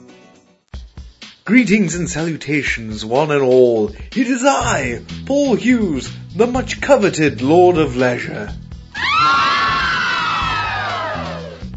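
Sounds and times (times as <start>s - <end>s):
speech: 1.5s - 8.6s
crowd screaming and cheering: 9.0s - 11.7s.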